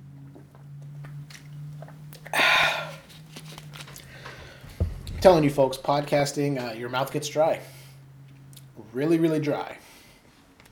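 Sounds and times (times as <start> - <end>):
person drinking water: 0.3 - 4.9
speech: 5.2 - 7.8, 8.9 - 9.8.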